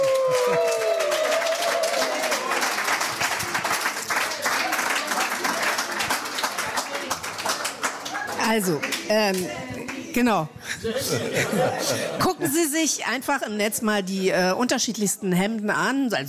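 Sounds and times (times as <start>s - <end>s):
applause: 0.0s - 10.1s
speech: 8.5s - 16.2s
laughter: 10.6s - 12.8s.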